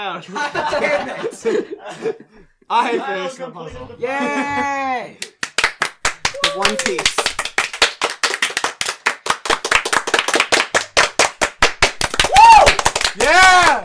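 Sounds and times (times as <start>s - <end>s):
speech: 0.0s - 5.3s, 6.6s - 7.3s, 13.2s - 13.8s
laughter: 0.2s - 3.2s, 4.0s - 5.0s
clap track hand claps: 5.2s - 13.8s.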